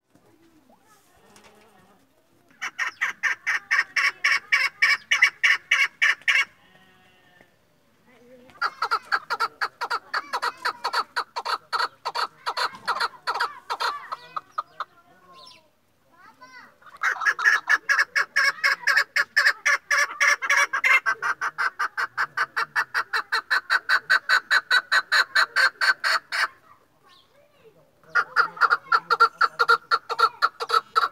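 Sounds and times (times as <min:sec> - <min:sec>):
partridge chick calling: 0:02.5 - 0:06.6, 0:08.6 - 0:15.6, 0:16.9 - 0:26.5, 0:28.0 - 0:31.1.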